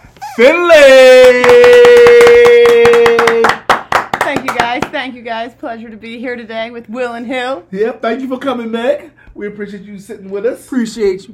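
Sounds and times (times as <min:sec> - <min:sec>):
speech: 0:00.4 - 0:01.8, 0:05.0 - 0:11.3
applause welcoming a guest: 0:01.2 - 0:05.0.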